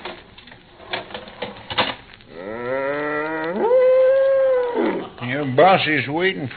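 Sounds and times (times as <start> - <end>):
cow mooing in a barn: 2.3 - 5.1
speech: 5.5 - 6.5.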